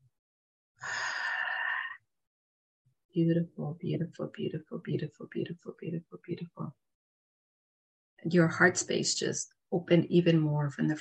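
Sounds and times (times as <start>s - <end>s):
deep breath during a guided meditation: 0.8s - 2.0s
speech: 3.2s - 6.9s, 8.2s - 10.9s.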